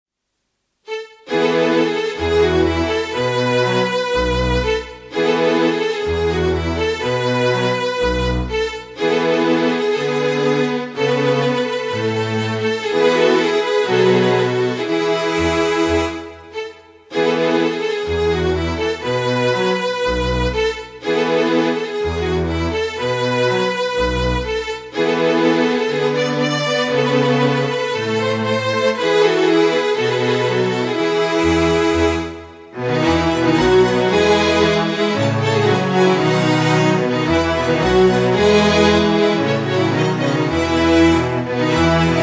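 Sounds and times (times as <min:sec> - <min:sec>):
minuet in E major: 0:00.9 - 0:42.2.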